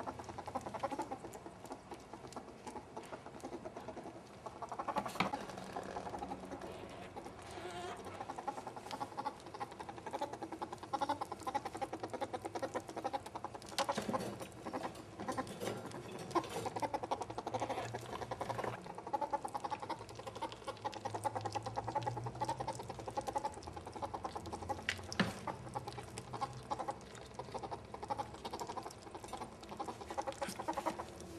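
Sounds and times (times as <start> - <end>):
cooing: 0.0 - 31.3.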